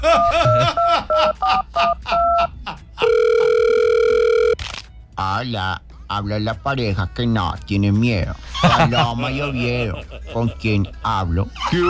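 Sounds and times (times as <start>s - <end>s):
telephone dialing: 0.0s - 2.4s, 3.0s - 4.6s
laughter: 0.0s - 3.6s, 8.3s - 11.8s
telephone ringing: 0.0s - 4.6s
speech: 5.4s - 11.8s.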